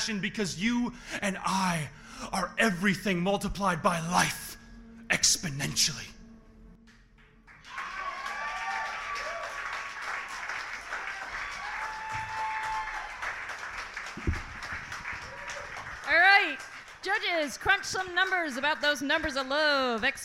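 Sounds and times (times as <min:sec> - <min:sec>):
speech: 0:00.0 - 0:06.2, 0:17.1 - 0:20.2
audience clapping: 0:07.4 - 0:20.2
audience whoops and shouted cheers: 0:07.6 - 0:10.0, 0:11.0 - 0:13.4, 0:15.1 - 0:16.0.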